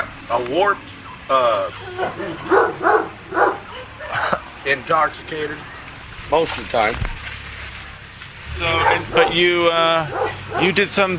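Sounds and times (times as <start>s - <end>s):
speech: 0.3s - 3.4s, 4.6s - 5.7s, 6.3s - 7.1s, 8.6s - 11.1s
angry dog barking: 1.9s - 4.3s, 8.7s - 9.4s, 10.0s - 10.8s.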